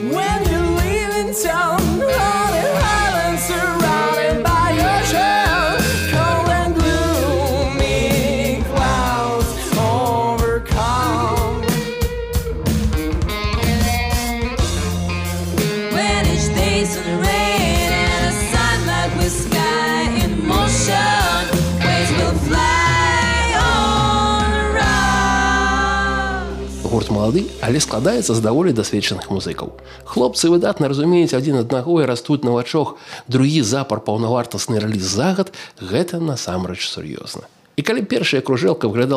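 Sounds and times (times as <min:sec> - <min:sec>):
melodic sung vocal line: 0:00.0 - 0:12.1, 0:15.8 - 0:27.0
rock band playing an album track: 0:00.0 - 0:28.9
speech: 0:01.2 - 0:02.2, 0:27.3 - 0:39.1.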